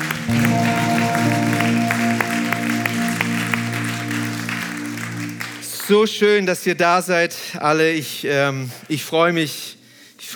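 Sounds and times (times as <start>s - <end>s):
applause: 0.0s - 6.7s
speech: 5.9s - 10.3s.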